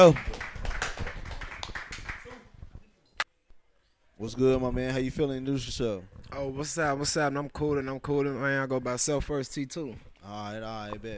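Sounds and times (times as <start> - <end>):
speech: 0.0 - 0.4, 4.2 - 11.1
round of applause: 0.0 - 2.3.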